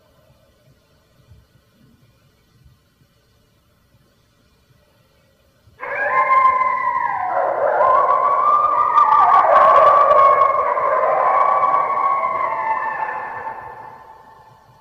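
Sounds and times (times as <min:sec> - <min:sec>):
red wolf howling: 0:05.8 - 0:14.8.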